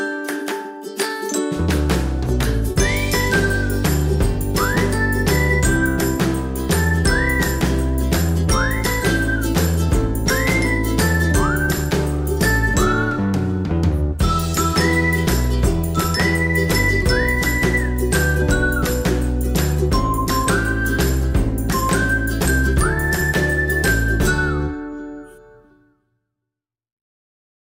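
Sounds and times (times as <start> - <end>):
cheerful fun instrumental background music: 0.0 - 25.7.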